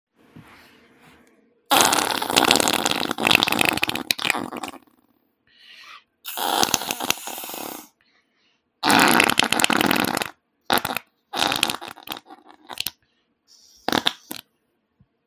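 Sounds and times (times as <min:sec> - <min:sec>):
fart: 0:01.7 - 0:05.1, 0:06.3 - 0:07.9, 0:08.8 - 0:13.0, 0:13.8 - 0:14.5.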